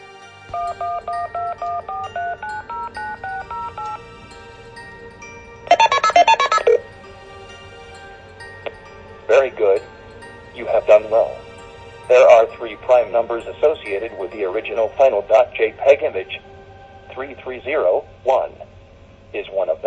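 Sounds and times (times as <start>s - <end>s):
touch-tone dialing of a phone number: 0.5s - 4.0s, 5.7s - 6.8s
speech: 0.6s - 2.7s, 10.6s - 11.4s, 12.1s - 16.5s, 17.2s - 18.6s, 19.3s - 19.8s.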